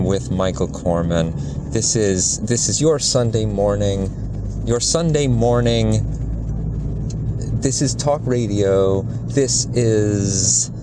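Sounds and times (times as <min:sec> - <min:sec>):
car being driven heard from inside the cabin: 0:00.0 - 0:10.8
speech: 0:00.1 - 0:06.2, 0:07.6 - 0:10.8.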